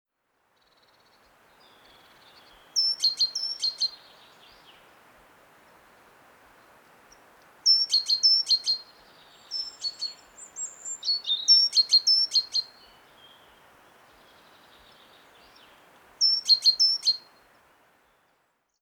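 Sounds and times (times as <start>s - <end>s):
steady low hiss: 0.2s - 18.8s
great tit whistle and ticking calls: 0.8s - 4.7s, 6.7s - 13.6s, 14.2s - 17.4s.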